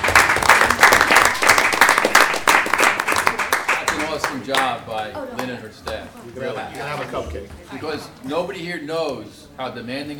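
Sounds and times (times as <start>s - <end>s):
round of applause from a group: 0.0s - 6.0s
speech: 4.4s - 10.1s.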